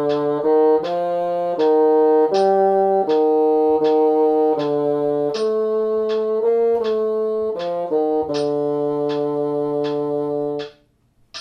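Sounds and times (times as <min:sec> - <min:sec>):
bassoon: 0:00.0 - 0:10.8.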